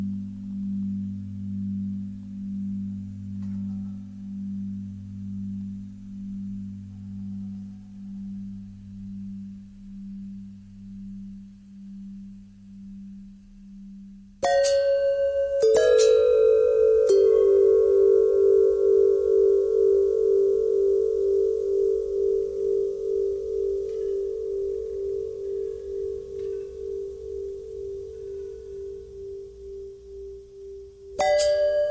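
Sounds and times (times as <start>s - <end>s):
long bells ringing: 14.4s - 31.8s.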